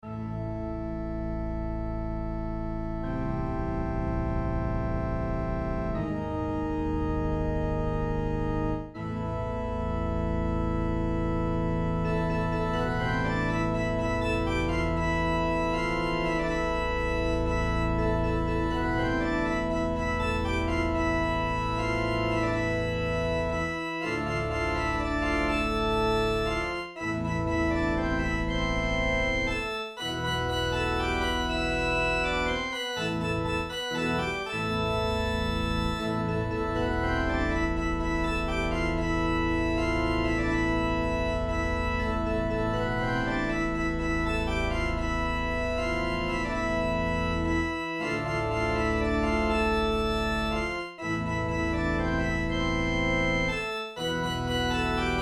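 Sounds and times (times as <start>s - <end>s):
organ waltz: 0.0s - 55.2s.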